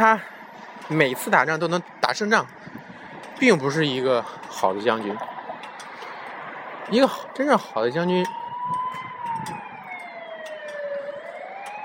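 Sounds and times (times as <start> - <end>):
speech: 0.0 - 2.6, 3.4 - 5.3, 6.9 - 8.8
low rumble of traffic: 0.0 - 11.8
police car siren wailing: 4.6 - 11.8.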